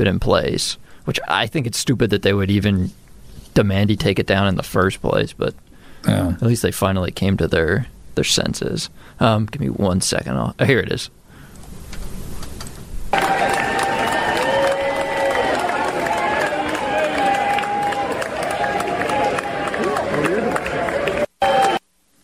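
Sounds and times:
speech: 0.0s - 3.0s, 3.6s - 11.2s
crowd cheering: 13.1s - 21.8s.

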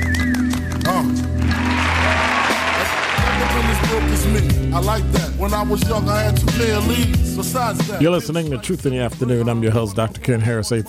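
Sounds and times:
round of applause: 0.3s - 4.6s
speech: 4.0s - 10.8s.

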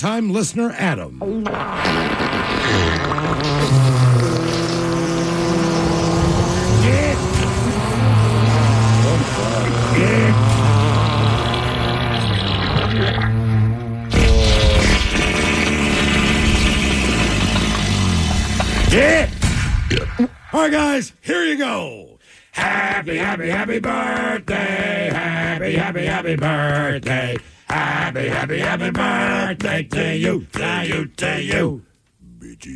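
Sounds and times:
speech: 0.0s - 4.0s, 20.2s - 32.7s
fart sound medley: 1.2s - 20.4s.

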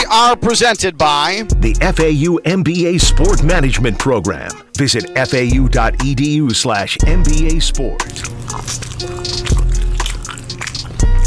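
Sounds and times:
speech: 0.1s - 9.6s
open mouth chewing: 7.9s - 11.2s.

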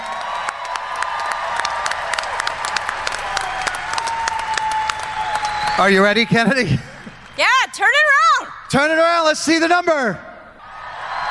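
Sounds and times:
audience applause: 0.0s - 7.5s
speech: 5.8s - 10.3s.

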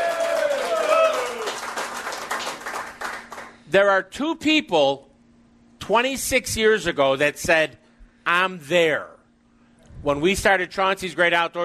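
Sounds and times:
bright whistle or high cheer: 0.0s - 1.7s
crowd clapping: 0.0s - 3.7s
speech: 3.7s - 5.1s, 5.9s - 9.1s, 10.0s - 11.6s.

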